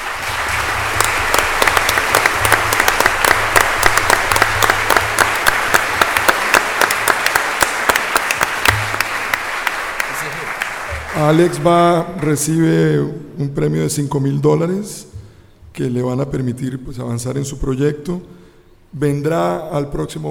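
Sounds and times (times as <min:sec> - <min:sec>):
audience applause for a prize winner at a festival award presentation: 0:00.0 - 0:12.5
speech: 0:11.2 - 0:15.1, 0:15.8 - 0:20.2.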